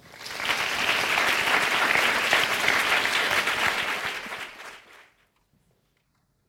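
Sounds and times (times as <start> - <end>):
audience applause welcoming a singer to the stage: 0.0 - 5.1.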